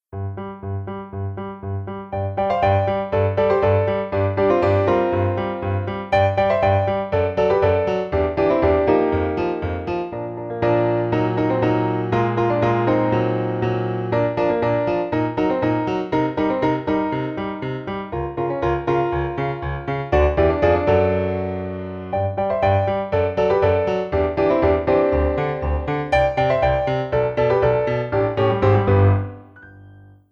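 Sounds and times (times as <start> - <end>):
solo piano: 0.1 - 30.3.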